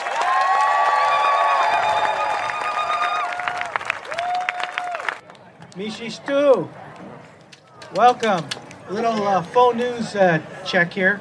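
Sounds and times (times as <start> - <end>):
audience applause: 0.0 - 5.2
speech: 5.8 - 7.1, 7.9 - 11.1.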